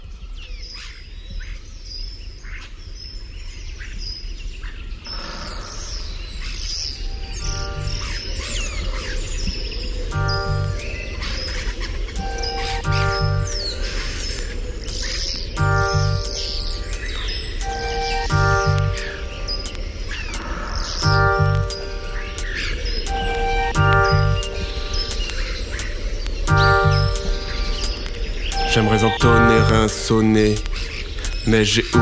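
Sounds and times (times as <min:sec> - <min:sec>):
flock of starlings chirping and chattering: 0:05.1 - 0:32.0
buzzy harmonic whistles: 0:06.9 - 0:08.8, 0:10.1 - 0:25.9, 0:26.5 - 0:32.0
speech: 0:28.8 - 0:32.0.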